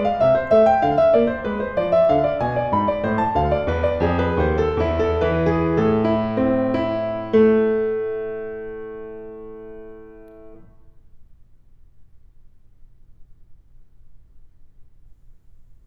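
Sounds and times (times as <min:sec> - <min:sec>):
piano invention: 0:00.0 - 0:10.9.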